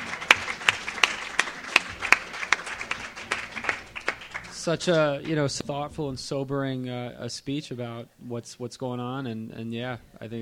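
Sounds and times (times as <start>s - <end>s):
audience applause: 0.0s - 5.2s
speech: 4.6s - 10.4s.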